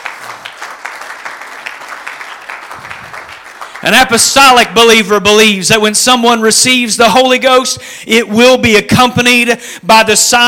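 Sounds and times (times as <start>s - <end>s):
audience clapping hands: 0.0s - 4.9s
speech: 3.8s - 10.4s.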